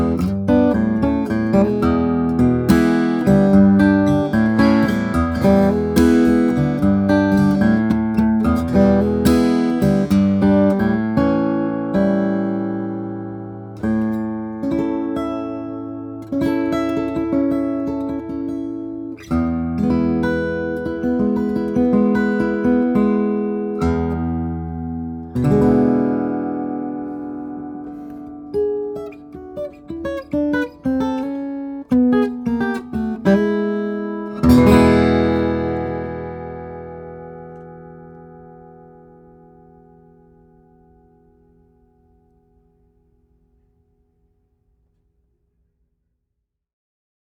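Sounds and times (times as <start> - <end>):
jumbo flattop steel string guitar of Brazilian rosewood and European spruce: 0.0 - 42.7.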